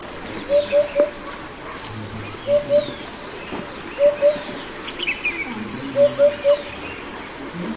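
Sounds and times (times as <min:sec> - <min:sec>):
hoopoe giving soft low hollow hoots: 0:00.4 - 0:03.2, 0:04.0 - 0:04.6, 0:05.3 - 0:07.7.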